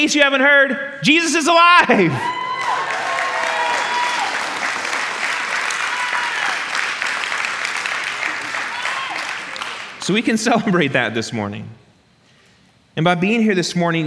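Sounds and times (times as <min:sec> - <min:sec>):
speech: 0:00.0 - 0:02.4, 0:10.1 - 0:11.8, 0:13.0 - 0:14.0
audience shouting: 0:02.1 - 0:06.8, 0:08.3 - 0:09.7
audience clapping: 0:02.3 - 0:10.4.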